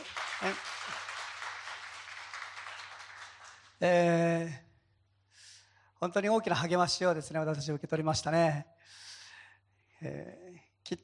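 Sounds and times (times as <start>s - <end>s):
audience applause: 0.0s - 3.8s
speech: 0.4s - 0.7s, 3.8s - 4.6s, 6.0s - 9.0s, 10.0s - 11.0s.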